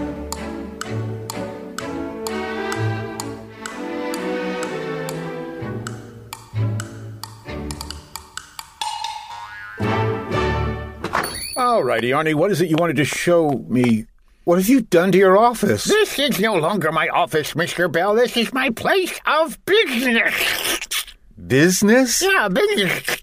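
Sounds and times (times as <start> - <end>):
bouncy tonal music: 0.0 - 11.1
phone timer ticking: 0.3 - 9.2
speech: 11.8 - 20.8, 21.4 - 23.2.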